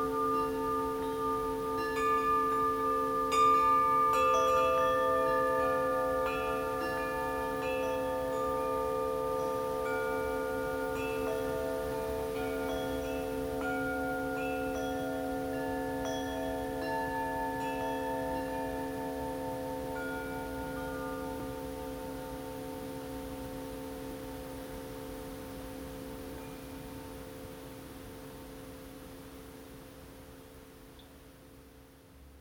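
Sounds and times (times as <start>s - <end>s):
copper chime set: 0.0s - 22.4s.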